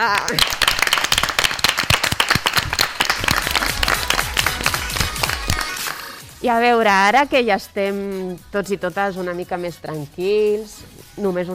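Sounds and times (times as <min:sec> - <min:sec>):
speech: 0:00.0 - 0:00.6, 0:06.4 - 0:11.5
applause from a class: 0:00.0 - 0:06.2.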